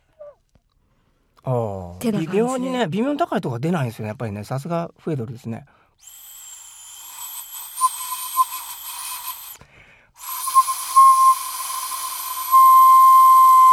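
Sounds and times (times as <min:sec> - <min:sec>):
speech: 0:01.4 - 0:06.2
high kettle-like whistle: 0:06.0 - 0:09.6, 0:10.2 - 0:13.7.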